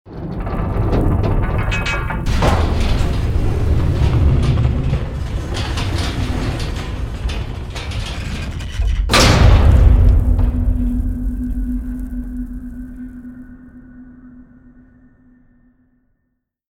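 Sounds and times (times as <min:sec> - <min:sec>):
graveyard gate opening: 0:00.1 - 0:15.2.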